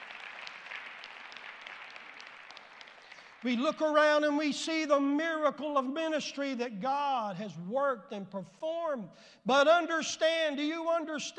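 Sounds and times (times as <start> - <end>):
audience hand clapping: 0.0 - 4.0
speech: 3.4 - 11.3.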